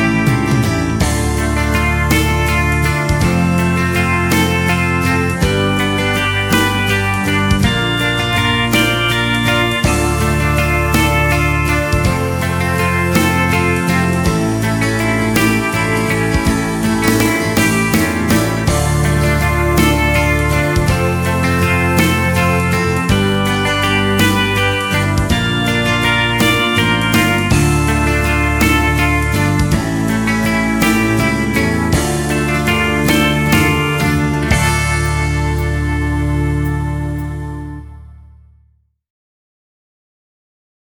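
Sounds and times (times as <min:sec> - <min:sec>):
recorder melody: 0:00.0 - 0:38.6.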